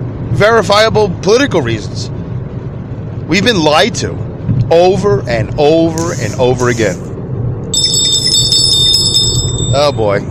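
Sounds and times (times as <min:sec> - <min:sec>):
speech: 0:00.4 - 0:02.1, 0:03.3 - 0:07.1, 0:09.7 - 0:10.3
phone going off: 0:07.8 - 0:10.1.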